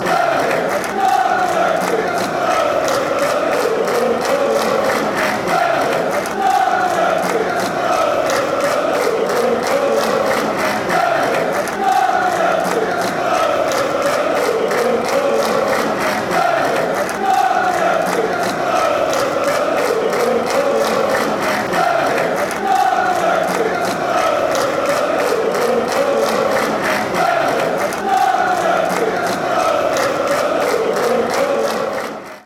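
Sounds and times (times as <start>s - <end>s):
chanting: 0.0s - 32.4s.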